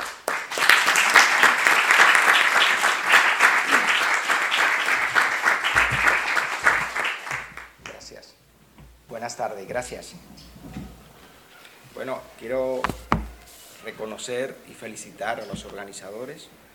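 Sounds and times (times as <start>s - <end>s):
crowd applauding: 0.0s - 8.0s
speech: 9.4s - 10.8s, 12.0s - 13.1s, 13.8s - 16.6s.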